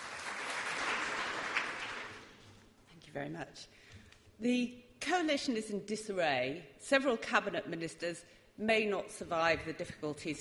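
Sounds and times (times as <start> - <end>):
audience applause welcoming a columnist onto a political discussion panel: 0.0 - 2.4
speech: 3.1 - 10.3.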